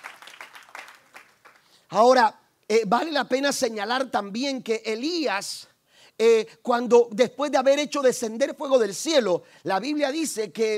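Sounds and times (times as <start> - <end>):
audience applause: 0.0 - 1.6
speech: 1.9 - 10.7.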